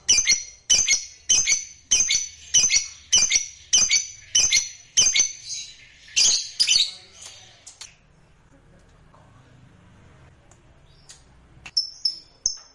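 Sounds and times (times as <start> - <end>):
lovebird song of rapid shrill twittering: 0.0 - 7.0.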